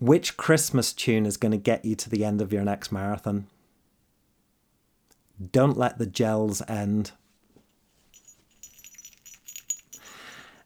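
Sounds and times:
speech: 0:00.0 - 0:03.6, 0:05.4 - 0:07.2
soft rustling: 0:07.2 - 0:10.6
small jingle bell on a running top rattling: 0:07.8 - 0:10.6.

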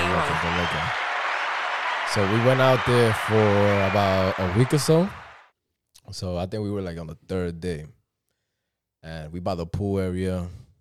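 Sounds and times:
applause sound effect: 0:00.0 - 0:05.5
speech: 0:02.1 - 0:05.2, 0:06.1 - 0:08.0, 0:09.0 - 0:10.6.

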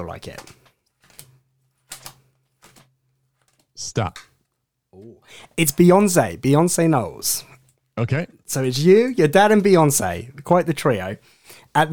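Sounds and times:
speech: 0:00.0 - 0:00.6, 0:03.8 - 0:04.3, 0:04.9 - 0:11.9
playing cards printed with celebrities dealt onto a table: 0:00.3 - 0:04.3.

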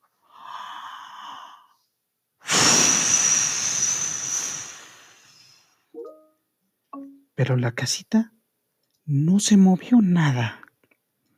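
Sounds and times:
short vocal bursts: 0:02.4 - 0:05.6
voice imitating a wolf blowing hard: 0:02.5 - 0:05.4
speech: 0:07.4 - 0:08.4, 0:09.1 - 0:10.6.

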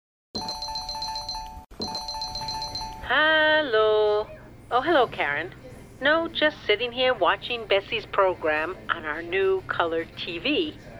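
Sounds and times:
telephone ringing: 0:00.4 - 0:03.2
speech: 0:03.1 - 0:10.9.

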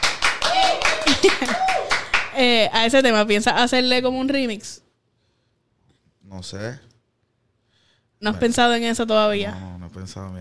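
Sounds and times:
short applause: 0:00.0 - 0:02.3
speech: 0:01.2 - 0:01.7, 0:02.4 - 0:04.8, 0:06.3 - 0:06.9, 0:08.2 - 0:10.3.

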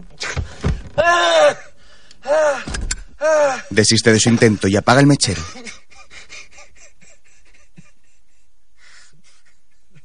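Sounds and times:
young man crying helplessly in darkness: 0:01.0 - 0:03.8, 0:05.2 - 0:10.0
speech: 0:02.5 - 0:05.6.

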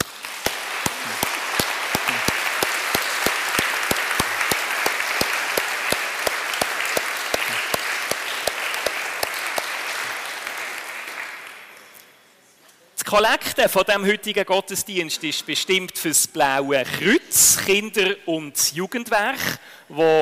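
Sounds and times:
audience applause: 0:00.0 - 0:11.8
speech: 0:13.1 - 0:20.1.

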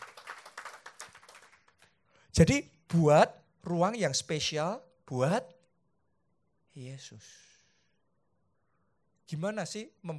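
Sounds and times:
audience applauding: 0:00.0 - 0:01.9
speech: 0:02.4 - 0:05.6, 0:06.8 - 0:07.5, 0:09.3 - 0:10.1.

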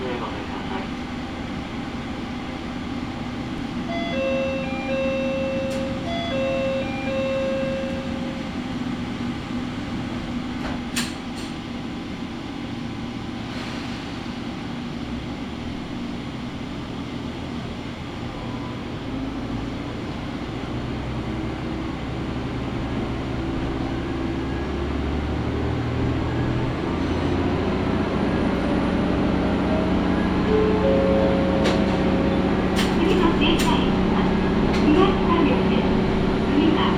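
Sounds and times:
Matsuura Railway train engine rumbling: 0:00.0 - 0:36.9
brief tones: 0:03.8 - 0:08.7.

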